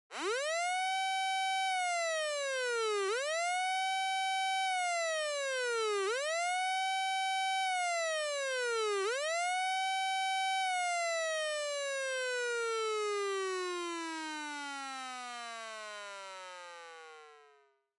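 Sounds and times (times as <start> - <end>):
dry police car siren: 0.1 - 17.2.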